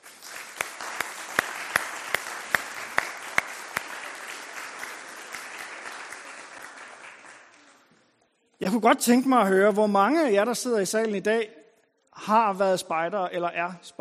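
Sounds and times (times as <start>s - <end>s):
sharp accented claps from an audience at a scout jubilee: 0.0s - 7.7s
general applause at a scout jubilee: 0.0s - 8.0s
speech: 8.7s - 11.6s, 12.2s - 14.0s.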